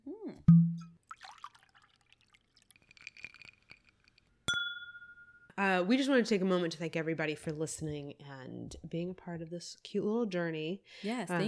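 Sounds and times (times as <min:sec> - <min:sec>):
soft liquid sipping sounds: 0:01.0 - 0:04.3
drink glass clink: 0:02.7 - 0:05.6
speech: 0:05.6 - 0:11.4.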